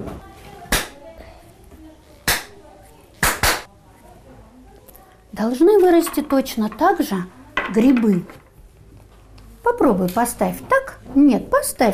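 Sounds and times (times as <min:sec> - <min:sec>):
sharp claps imitating raindrops dripping: 0:03.2 - 0:03.7
speech: 0:05.4 - 0:08.4, 0:09.6 - 0:11.9.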